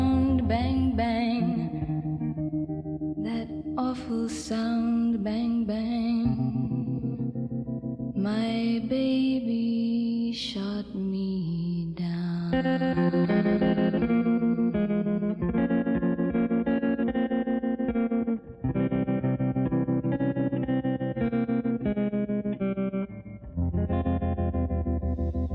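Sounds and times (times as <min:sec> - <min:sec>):
pop song with electric guitar through tremolo effect: 0:00.0 - 0:25.5
speech: 0:03.9 - 0:06.0, 0:08.2 - 0:09.6.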